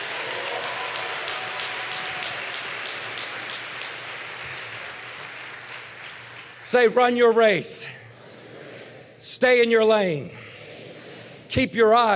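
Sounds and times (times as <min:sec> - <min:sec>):
audience applause: 0:00.0 - 0:06.7
speech: 0:06.6 - 0:08.0, 0:09.2 - 0:10.4, 0:11.6 - 0:12.1.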